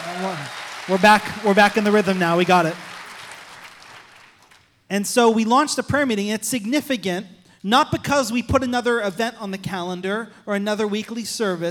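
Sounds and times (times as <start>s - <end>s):
crowd clapping: 0.0s - 4.8s
speech: 0.2s - 2.9s, 4.9s - 11.6s.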